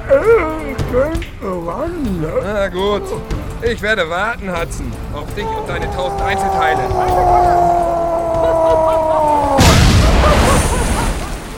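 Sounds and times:
speech: 0.1 - 9.2
laughter: 5.3 - 11.5
explosion: 9.6 - 11.5.

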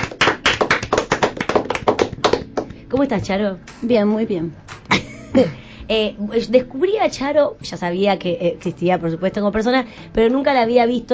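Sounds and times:
hand clapping in a studio welcoming a guest: 0.0 - 3.8
speech: 2.9 - 11.1.

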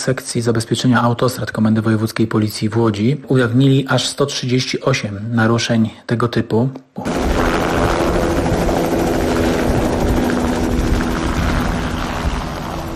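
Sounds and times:
speech: 0.0 - 7.2
police helicopter rotor and engine roaring: 7.0 - 12.9.

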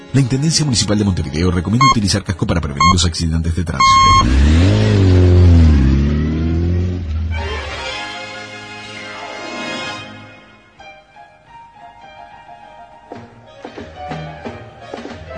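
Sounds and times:
speech: 0.1 - 5.7
motorcycle engine revving hard with throttle blips and rough idle: 3.8 - 7.5.

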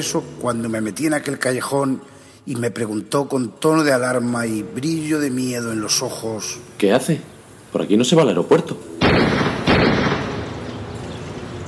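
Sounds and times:
speech: 0.0 - 9.4
gunshot fired at point-blank range: 9.0 - 11.2.

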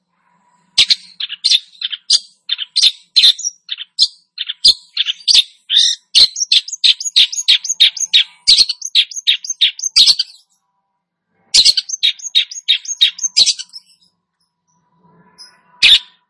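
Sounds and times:
long-tailed shrike singing harsh chips and sharp varied notes: 0.8 - 10.5, 11.6 - 14.1.

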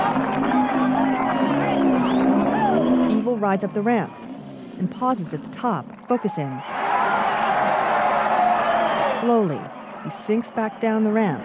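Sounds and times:
crowd clapping: 0.0 - 3.2, 6.0 - 11.4
speech: 3.4 - 4.2, 4.8 - 6.7, 9.2 - 11.4.

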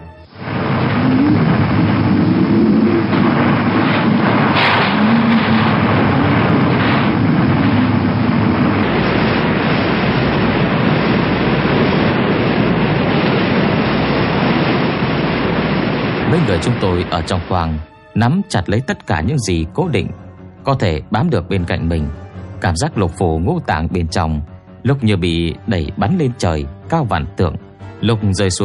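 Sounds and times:
crashing waves at sea: 0.2 - 17.8
thunderstorm at sea: 0.3 - 17.8
speech: 16.4 - 28.6.

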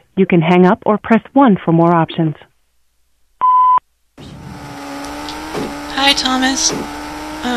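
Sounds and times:
speech: 0.2 - 2.5, 6.0 - 7.5
voicemail beep signalling start of message recording: 3.4 - 3.8.

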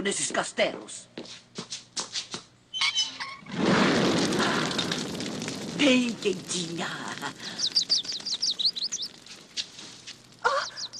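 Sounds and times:
speech: 0.0 - 1.4, 5.8 - 7.8
small blue bird flapping: 3.5 - 10.9
small blue bird chirping: 7.3 - 10.9.

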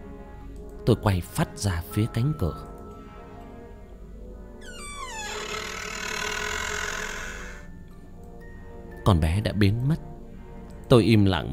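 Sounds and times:
speech: 0.8 - 2.7, 9.0 - 10.1, 10.9 - 11.5
window creaking in the quiet night: 4.6 - 7.7.

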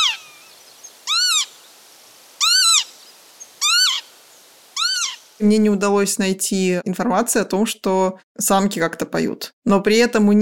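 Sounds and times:
Northern lapwing calling: 0.0 - 5.4
faint hiss: 0.0 - 6.2
speech: 5.4 - 10.4.

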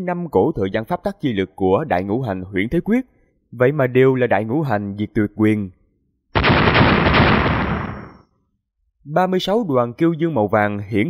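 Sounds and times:
speech: 0.0 - 5.8, 9.0 - 11.0
explosion sound effect: 6.4 - 8.2.

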